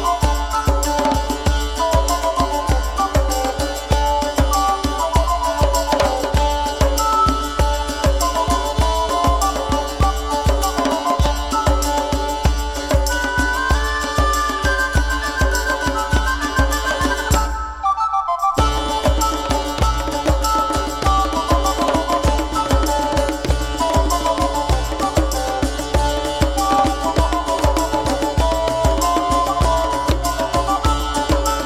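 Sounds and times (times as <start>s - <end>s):
djembe playing a saltarello: 0.0s - 17.6s, 18.6s - 31.6s.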